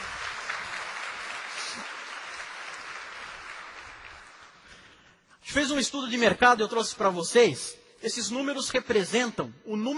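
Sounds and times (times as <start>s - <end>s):
audience applause: 0.0s - 4.9s
speech: 5.5s - 9.9s.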